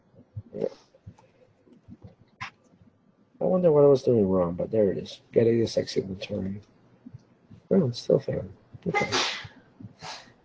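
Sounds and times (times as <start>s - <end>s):
speech: 3.6s - 6.8s, 7.8s - 9.3s
sneeze: 8.9s - 10.2s.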